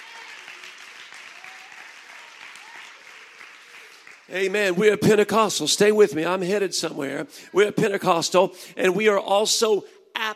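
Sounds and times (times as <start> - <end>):
audience clapping hands: 0.0 - 5.3
speech: 4.3 - 10.3.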